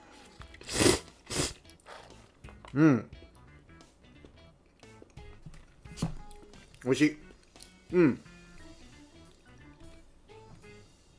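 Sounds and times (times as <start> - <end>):
Peyoung cup yakisoba noodles being slurped: 0.4 - 2.6
speech: 2.8 - 3.2, 6.8 - 7.2, 7.9 - 8.3.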